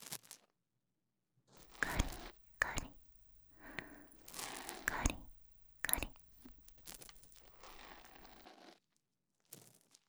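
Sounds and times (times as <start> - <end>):
ear pick cleaning the right ear: 1.6 - 8.4
person whispering in the right ear: 1.6 - 8.4.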